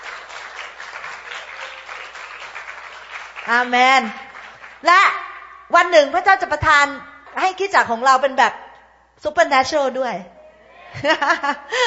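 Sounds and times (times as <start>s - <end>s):
audience clapping loudly: 0.0s - 4.9s
speech: 3.5s - 4.2s, 4.8s - 8.6s, 9.2s - 11.8s.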